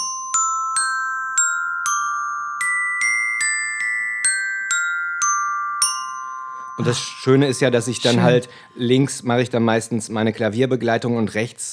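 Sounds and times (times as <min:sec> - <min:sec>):
children's glockenspiel being played: 0:00.0 - 0:10.1
speech: 0:06.8 - 0:11.7.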